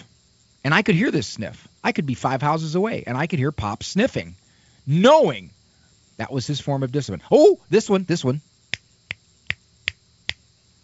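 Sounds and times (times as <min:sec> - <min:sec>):
speech: 0:00.6 - 0:05.6, 0:06.2 - 0:08.5
fingers snapping: 0:08.7 - 0:10.4.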